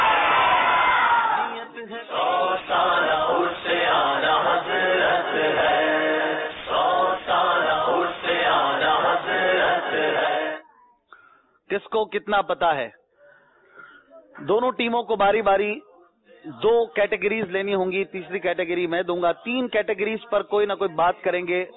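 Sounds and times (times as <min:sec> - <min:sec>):
crowd chanting a religious slogan at a naat competition show: 0:00.0 - 0:10.6
speech: 0:12.0 - 0:13.0, 0:14.4 - 0:21.7.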